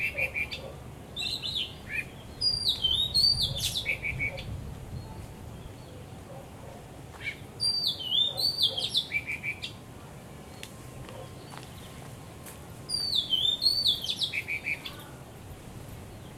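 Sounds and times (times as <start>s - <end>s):
birds singing: 0.0s - 9.8s, 10.4s - 16.3s.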